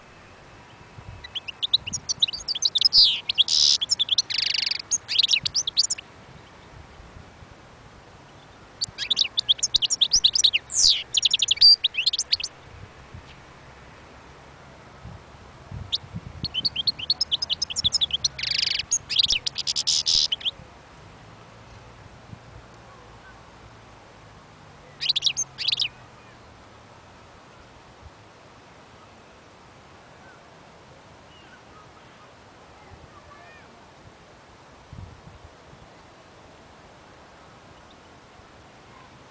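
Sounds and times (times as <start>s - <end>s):
European goldfinch twittering: 1.2s - 6.0s, 8.8s - 12.6s, 16.4s - 20.5s, 25.0s - 25.9s.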